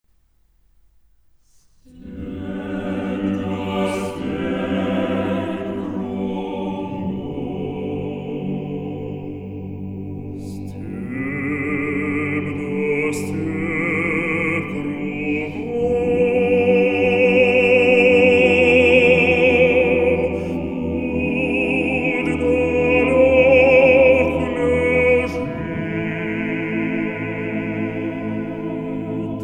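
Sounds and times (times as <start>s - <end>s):
choir singing: 1.9s - 29.4s.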